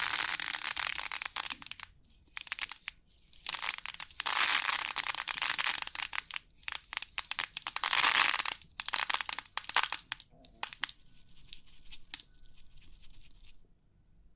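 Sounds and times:
3D pin art rattling and clicking: 0:00.0 - 0:11.0.

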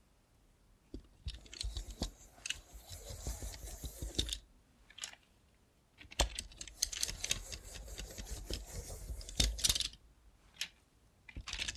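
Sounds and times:
robot hand scratching and snipping: 0:01.3 - 0:04.4, 0:06.1 - 0:10.0.

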